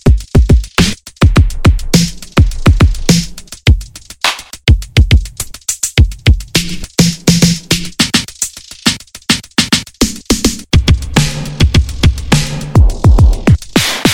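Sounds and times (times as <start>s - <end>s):
snare drums slapping: 0.0s - 14.1s.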